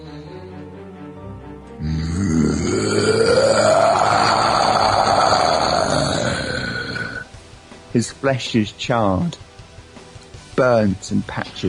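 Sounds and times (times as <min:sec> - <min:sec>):
person imitating the roar of a winged creature: 0:01.8 - 0:07.3
speech: 0:08.0 - 0:09.4, 0:10.6 - 0:11.6.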